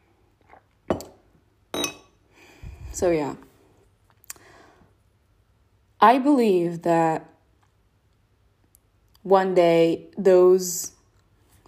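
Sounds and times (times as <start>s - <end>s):
coffee cup clinking: 0.9s - 2.1s
speech: 3.0s - 3.5s, 6.0s - 7.3s, 9.2s - 11.0s.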